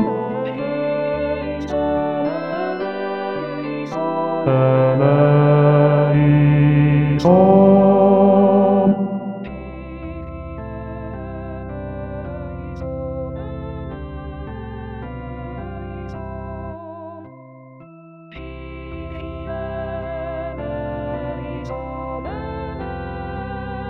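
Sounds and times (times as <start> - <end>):
bass voice singing: 0.0 - 12.6.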